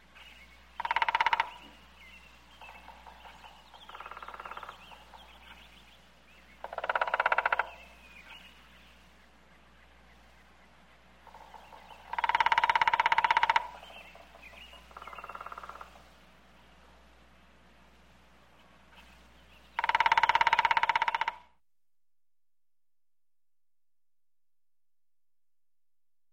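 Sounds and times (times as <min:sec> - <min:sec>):
woodpecker drumming: 0:00.7 - 0:05.8, 0:06.5 - 0:08.5, 0:11.0 - 0:16.1, 0:19.5 - 0:21.6.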